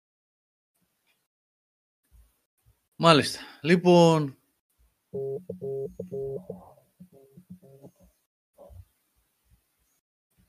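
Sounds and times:
speech: 0:03.0 - 0:04.4, 0:05.2 - 0:08.0
telephone ringing with electronic tone bursts: 0:05.2 - 0:08.0.

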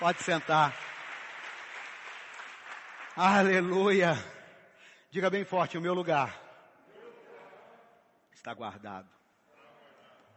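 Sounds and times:
speech: 0:00.0 - 0:00.9, 0:03.2 - 0:04.4, 0:05.1 - 0:06.4, 0:08.4 - 0:09.2
audience applause: 0:00.0 - 0:04.0.

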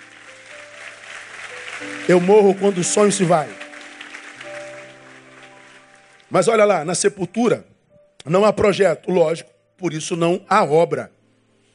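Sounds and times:
crowd applause: 0:00.0 - 0:06.4
speech: 0:01.8 - 0:03.6, 0:06.3 - 0:11.2.

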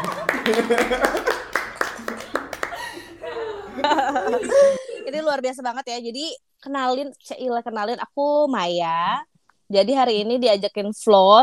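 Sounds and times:
small group of podcast guests clapping: 0:00.0 - 0:04.1
people laughing and chuckling: 0:00.0 - 0:05.2
speech: 0:00.5 - 0:01.3, 0:03.8 - 0:11.4.

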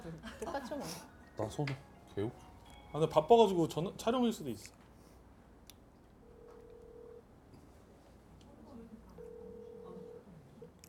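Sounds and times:
speech: 0:00.6 - 0:04.8
phone line ringback tones, phone ringing unanswered: 0:06.3 - 0:07.2, 0:09.2 - 0:10.2.

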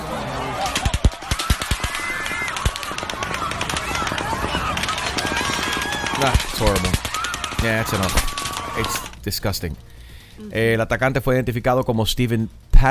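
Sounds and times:
gunshots: 0:00.6 - 0:09.2
speech: 0:06.2 - 0:07.0, 0:07.6 - 0:12.8.

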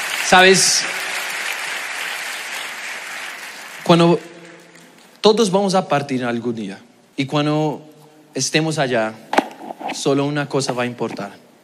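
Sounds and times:
applause: 0:00.0 - 0:05.1
speech: 0:00.3 - 0:01.0, 0:03.9 - 0:04.3, 0:05.2 - 0:09.3, 0:09.9 - 0:11.4.

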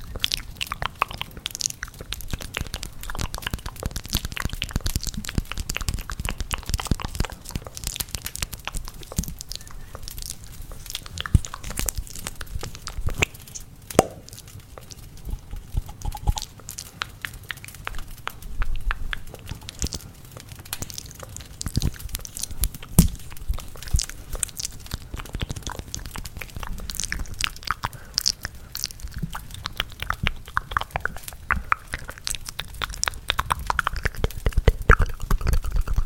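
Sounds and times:
fireplace crackling: 0:00.0 - 0:36.0
intense wet mouth clicks and chewing smacks: 0:00.0 - 0:36.0.

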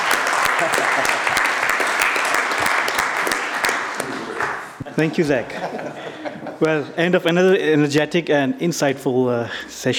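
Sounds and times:
applause: 0:00.0 - 0:04.8
laughter: 0:00.3 - 0:01.7, 0:04.0 - 0:07.0
speech: 0:00.6 - 0:01.2, 0:05.0 - 0:09.9.

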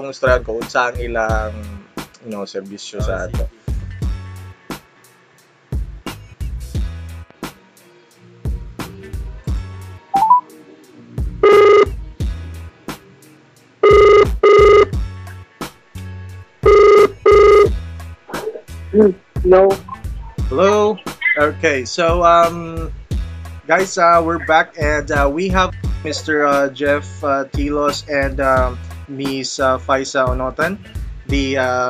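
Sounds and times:
speech: 0:00.0 - 0:03.6, 0:19.5 - 0:19.8, 0:20.5 - 0:22.9, 0:23.7 - 0:31.8
brief tone: 0:10.2 - 0:10.5
telephone ringing during a call: 0:11.4 - 0:11.9, 0:13.8 - 0:14.9, 0:16.6 - 0:17.7.

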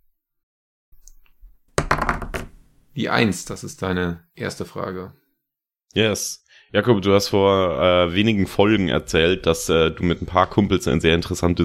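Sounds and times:
dice being rolled: 0:01.2 - 0:02.6
speech: 0:03.0 - 0:05.2, 0:05.9 - 0:11.6.

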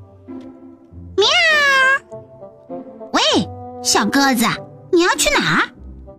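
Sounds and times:
big cat meowing: 0:01.2 - 0:02.1
speech: 0:03.4 - 0:05.7.

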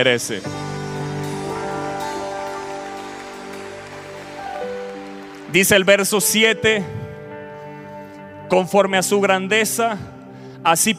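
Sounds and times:
speech: 0:00.0 - 0:00.6, 0:05.5 - 0:07.0, 0:08.5 - 0:10.9
applause: 0:00.6 - 0:06.6.

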